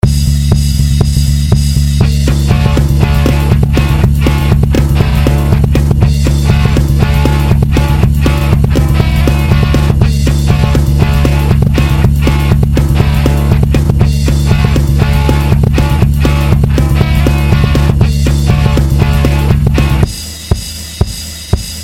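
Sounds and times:
punk rock guitar tone: 0:00.0 - 0:21.8.

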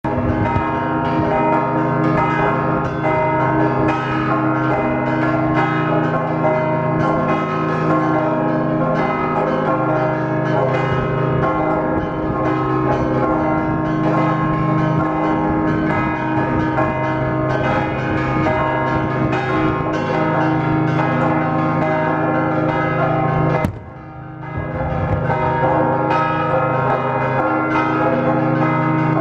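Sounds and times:
Mellieha church bells ringing: 0:00.0 - 0:29.1.

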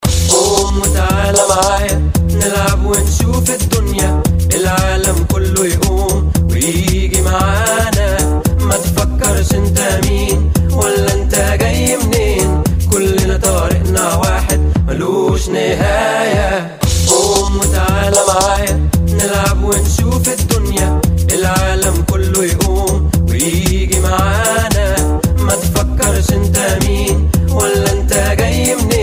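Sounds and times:
Arabic dub mix: 0:00.0 - 0:29.0.

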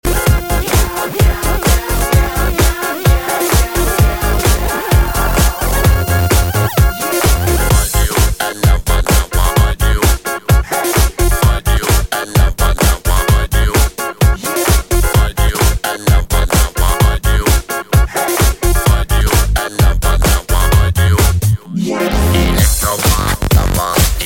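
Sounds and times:
electro funk music: 0:00.0 - 0:24.2.

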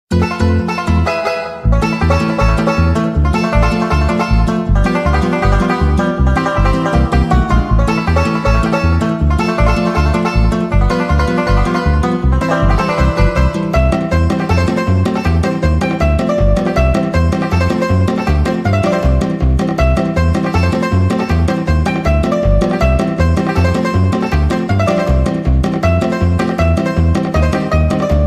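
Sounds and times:
banjo: 0:00.1 - 0:28.2.

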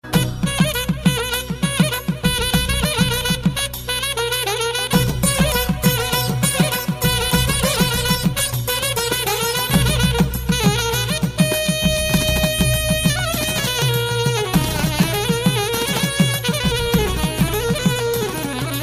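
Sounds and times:
saxophone: 0:00.0 - 0:18.8.

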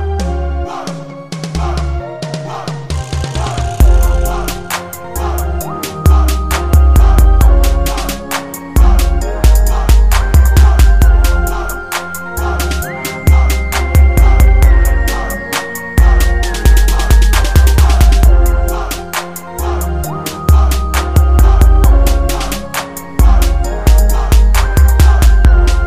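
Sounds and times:
crunk beats: 0:00.2 - 0:05.0, 0:05.8 - 0:19.4, 0:20.5 - 0:25.8.

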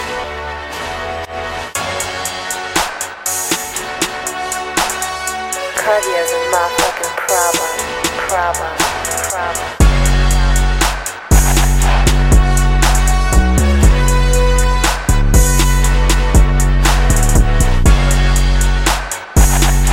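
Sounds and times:
trap beat: 0:01.8 - 0:19.9.

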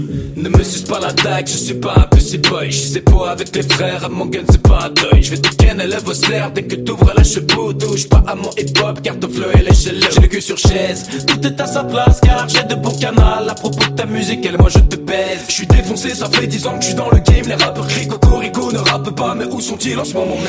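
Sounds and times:
French rap: 0:00.4 - 0:20.4.

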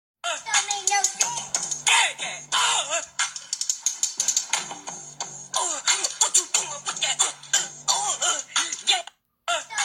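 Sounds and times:
vocal sounds: 0:00.2 - 0:03.4, 0:05.5 - 0:09.8.

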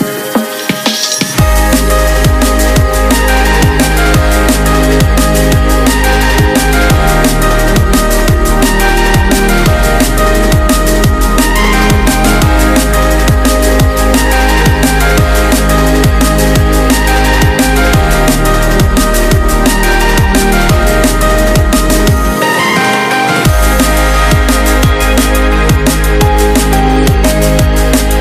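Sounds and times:
remix music: 0:00.0 - 0:28.1.

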